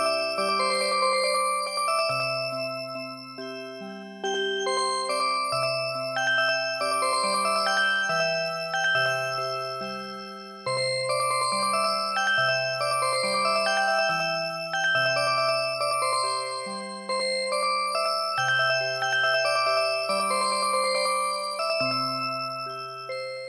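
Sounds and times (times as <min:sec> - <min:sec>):
music box playing a traditional song: 0:00.0 - 0:23.4.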